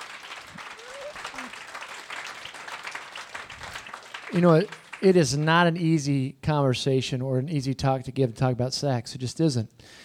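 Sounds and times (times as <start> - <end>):
crowd clapping: 0.0 - 5.5
faint whistle or cheer: 0.6 - 1.6
speech: 4.3 - 10.0.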